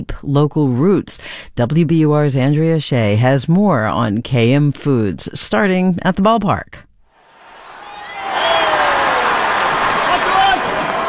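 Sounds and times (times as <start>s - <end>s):
speech: 0.0s - 6.9s
big baseball stadium crowd roaring: 7.2s - 11.0s.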